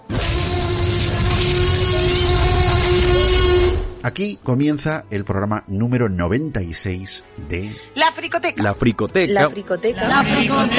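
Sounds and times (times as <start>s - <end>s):
spoiler alarm sound effect: 0.1s - 4.0s
speech: 4.0s - 10.7s.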